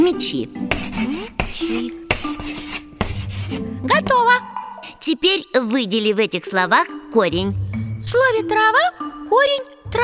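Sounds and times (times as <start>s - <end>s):
speech: 0.1s - 0.8s, 5.1s - 10.0s
chalk scratching across a blackboard: 0.6s - 4.2s.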